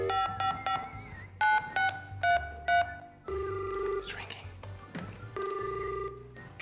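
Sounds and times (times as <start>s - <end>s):
telephone dialing tones: 0.0s - 4.0s, 5.3s - 6.2s.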